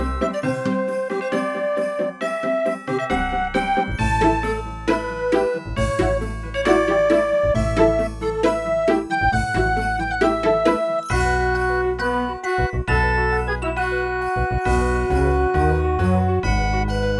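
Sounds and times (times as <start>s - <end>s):
new year's fireworks music: 0.2s - 17.1s.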